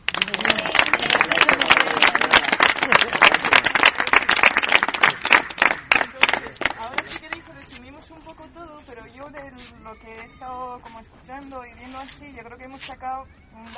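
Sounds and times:
audience applause: 0:00.0 - 0:07.0
speech: 0:10.3 - 0:13.7.

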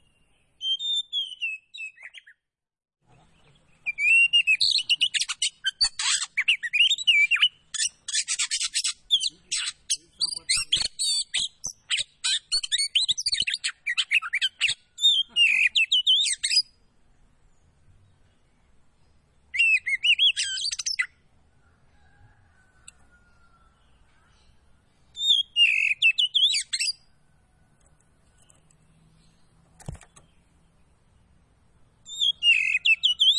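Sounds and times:
Oriental magpie-robin song of whistles chirps and rasping notes: 0:00.0 - 0:02.4, 0:03.4 - 0:16.8, 0:19.5 - 0:21.2, 0:22.0 - 0:27.1, 0:32.0 - 0:33.3.

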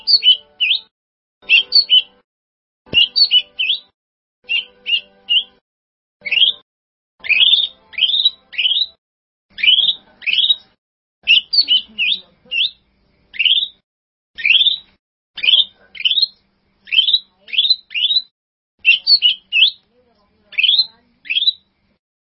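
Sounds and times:
bird song: 0:00.0 - 0:02.2, 0:02.9 - 0:05.6, 0:06.2 - 0:06.6, 0:07.2 - 0:13.8, 0:14.4 - 0:22.0.

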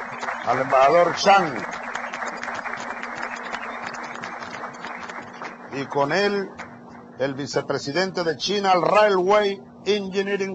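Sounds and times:
audience applause: 0:00.0 - 0:06.8
speech: 0:00.5 - 0:01.8, 0:05.8 - 0:06.6, 0:07.2 - 0:10.5.

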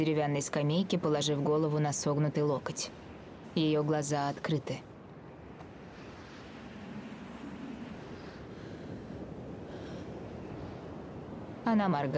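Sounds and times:
speech: 0:00.0 - 0:04.9, 0:11.7 - 0:12.1
wind blowing over a rippled sea below a clifftop: 0:00.0 - 0:12.1
gentle surging swells of sea waves: 0:05.7 - 0:11.8.

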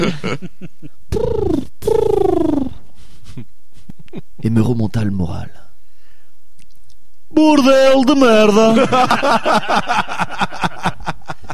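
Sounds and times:
speech: 0:00.0 - 0:00.8, 0:04.5 - 0:05.6, 0:07.4 - 0:10.2
laughter: 0:00.0 - 0:00.9, 0:08.7 - 0:11.5
pigeon cooing: 0:01.1 - 0:02.8.

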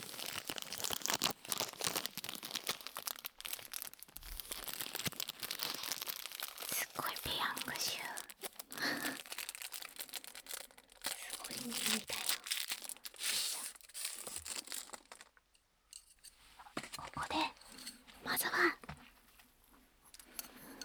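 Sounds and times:
crinkly disposable chopstick wrapper rustling: 0:00.0 - 0:15.4
person whispering: 0:06.6 - 0:08.4, 0:11.1 - 0:12.5, 0:16.9 - 0:18.9.

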